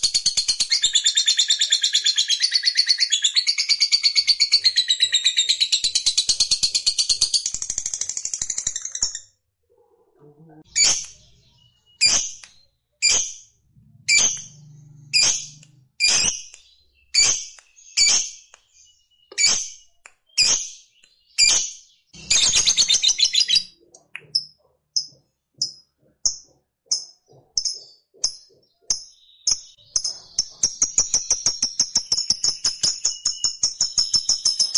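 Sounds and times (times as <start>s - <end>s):
lovebird chirping: 0.0s - 9.3s, 10.4s - 34.7s
low hum: 13.6s - 16.0s.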